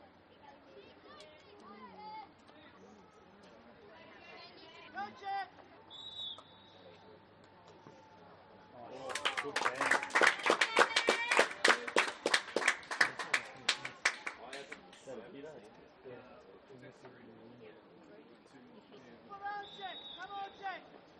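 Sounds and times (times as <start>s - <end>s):
parents and children cheering at a school soccer game: 8.9s - 14.8s
parents and children clapping at a school soccer game: 8.9s - 15.1s.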